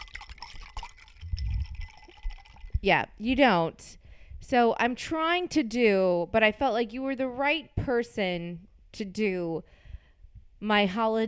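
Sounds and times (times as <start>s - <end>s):
drink being stirred: 0.0s - 2.9s
speech: 2.8s - 9.8s, 10.6s - 11.2s.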